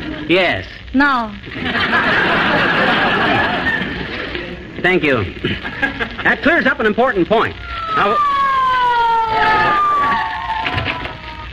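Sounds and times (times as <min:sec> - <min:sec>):
noise: 0:00.0 - 0:11.5
speech: 0:00.3 - 0:03.6, 0:04.8 - 0:08.4
laughter: 0:01.5 - 0:04.6, 0:05.4 - 0:06.5
police car siren winding down on arrival: 0:07.5 - 0:11.5.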